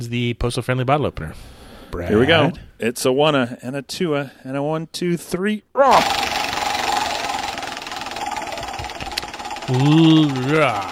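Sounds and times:
speech: 0.0s - 6.2s, 9.7s - 10.9s
prize wheel spinning with rattling clicks: 5.9s - 10.9s.

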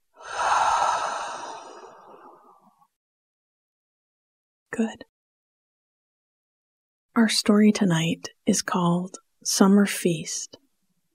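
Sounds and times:
breathy outbreath through the mouth: 0.2s - 2.7s
speech: 4.8s - 5.1s, 7.2s - 10.6s.

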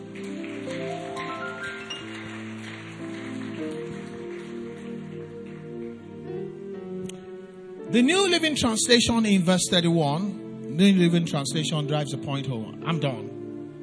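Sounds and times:
audience clapping: 0.0s - 6.5s
speech: 7.9s - 13.2s.

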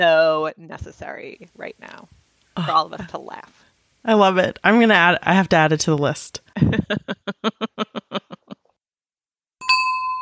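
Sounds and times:
speech: 0.0s - 7.8s
rhythmic laughter: 6.5s - 8.7s.

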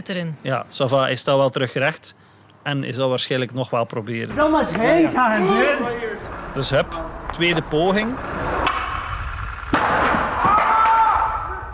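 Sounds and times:
speech: 0.0s - 8.3s
skateboard wheels landing and rolling on stone pavement: 5.5s - 11.4s.

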